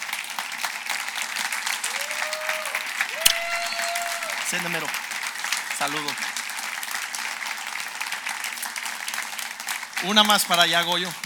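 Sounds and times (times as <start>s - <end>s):
church congregation applauding to welcome a couple: 0.0s - 11.2s
speech: 4.5s - 5.1s, 5.8s - 6.4s, 10.0s - 11.2s.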